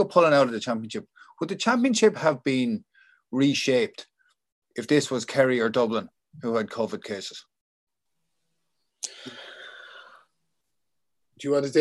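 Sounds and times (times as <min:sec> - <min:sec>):
speech: 0:00.0 - 0:04.1, 0:04.8 - 0:07.5, 0:09.0 - 0:09.4, 0:11.4 - 0:11.7
big sharp inhale from a person about to answer a question: 0:09.0 - 0:10.3.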